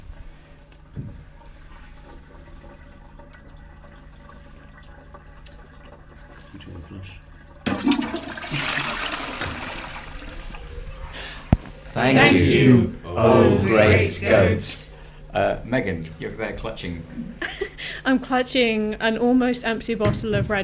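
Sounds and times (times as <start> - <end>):
toilet flushing: 0.0 - 12.0
speech: 6.9 - 7.2, 12.0 - 14.8, 15.4 - 20.6.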